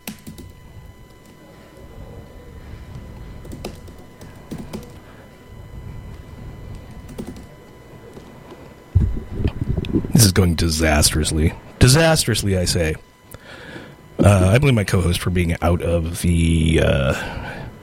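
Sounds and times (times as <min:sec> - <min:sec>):
typing on a computer keyboard: 0:00.0 - 0:00.5, 0:03.4 - 0:05.0, 0:06.7 - 0:07.5
low steady hum: 0:00.0 - 0:17.8
speech: 0:10.2 - 0:13.1, 0:14.2 - 0:17.4.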